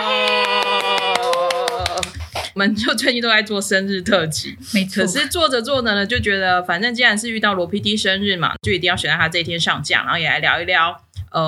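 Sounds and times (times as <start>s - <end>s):
rhythmic hand claps: 0.0s - 2.9s
speech: 2.6s - 11.4s.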